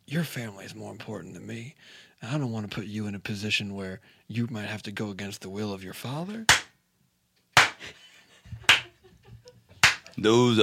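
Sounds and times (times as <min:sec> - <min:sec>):
speech: 0:00.1 - 0:06.7, 0:10.2 - 0:10.6
robotic steel arm clapping: 0:09.8 - 0:10.1.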